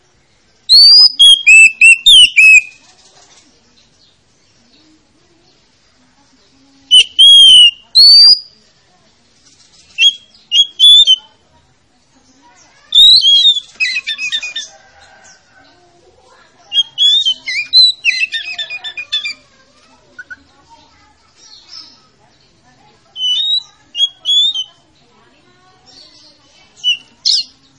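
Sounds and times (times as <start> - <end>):
Oriental magpie-robin whistling: 0.7 - 2.8, 6.9 - 8.5, 9.9 - 11.3, 12.9 - 14.7, 16.6 - 19.4, 23.1 - 24.8, 26.8 - 27.6.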